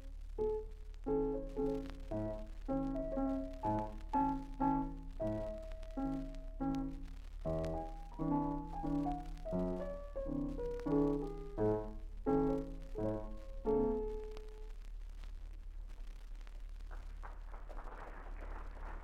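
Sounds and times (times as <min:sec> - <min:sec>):
piano played badly at an audition: 0:00.4 - 0:14.4.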